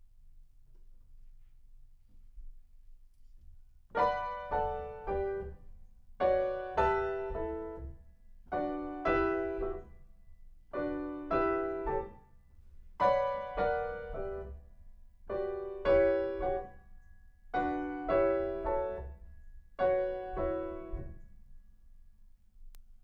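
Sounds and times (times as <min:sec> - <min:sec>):
piano in a room: 0:03.9 - 0:21.8.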